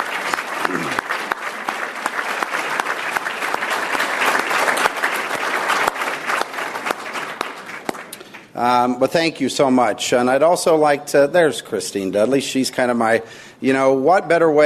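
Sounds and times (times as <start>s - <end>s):
audience applause: 0.0s - 8.5s
speech: 8.6s - 14.6s.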